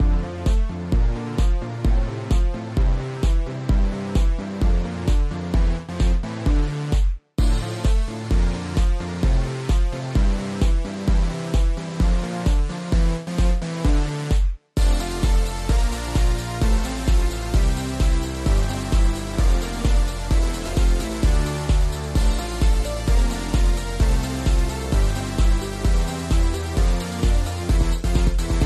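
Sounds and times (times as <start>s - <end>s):
alternative percussion: 0.0s - 28.6s.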